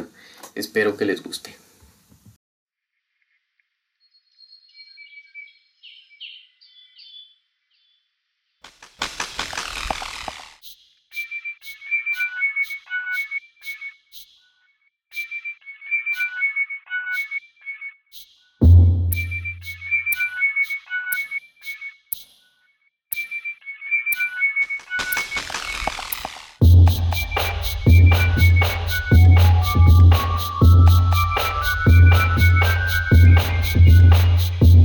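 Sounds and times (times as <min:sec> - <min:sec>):
speech: 0:00.6 - 0:01.6
sharp rhythmic clicks: 0:08.7 - 0:11.8, 0:18.1 - 0:22.4, 0:23.1 - 0:23.3, 0:24.1 - 0:34.8
resplendent quetzal whistled calls: 0:10.6 - 0:14.4, 0:15.1 - 0:18.3, 0:19.1 - 0:22.1, 0:23.2 - 0:25.8, 0:27.0 - 0:34.8.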